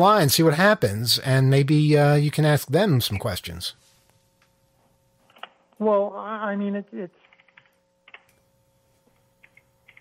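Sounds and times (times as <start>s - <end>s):
speech: 0.0s - 3.8s, 5.8s - 7.2s
typing on a computer keyboard while entering a phone number: 7.2s - 8.4s, 9.4s - 10.0s.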